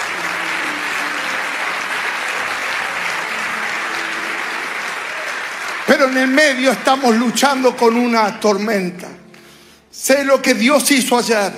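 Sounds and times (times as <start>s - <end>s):
sustained audience applause: 0.0s - 8.2s
speech: 5.9s - 9.2s, 10.0s - 11.5s.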